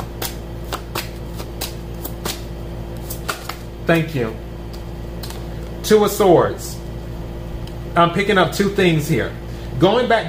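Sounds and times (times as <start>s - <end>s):
tarot cards being shuffled and drawn from a deck during a reading: 0.0s - 3.7s
speech: 3.9s - 4.4s, 5.9s - 6.8s, 8.0s - 10.2s.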